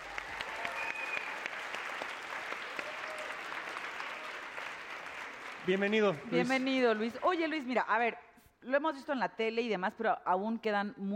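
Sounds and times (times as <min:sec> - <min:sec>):
audience applause: 0:00.0 - 0:07.3
speech: 0:05.7 - 0:11.1.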